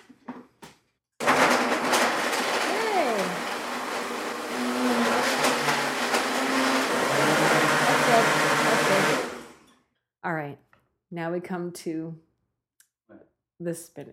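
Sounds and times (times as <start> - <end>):
blender blending frozen pineapple and water: 1.2 - 9.6
speech: 11.2 - 12.3, 13.6 - 14.1.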